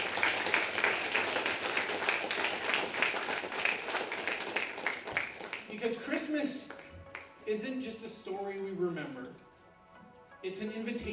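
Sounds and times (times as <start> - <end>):
audience clapping: 0.0 - 7.4
speech: 5.8 - 6.8, 7.4 - 9.5, 10.4 - 11.1.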